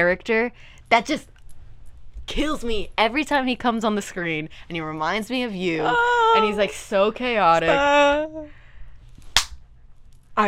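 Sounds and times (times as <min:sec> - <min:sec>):
speech: 0:00.0 - 0:01.3, 0:02.3 - 0:08.6
slap: 0:09.2 - 0:09.6.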